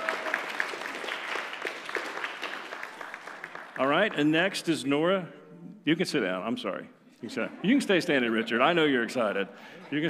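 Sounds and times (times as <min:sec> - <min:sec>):
audience clapping: 0:00.0 - 0:04.4
speech: 0:03.8 - 0:10.0.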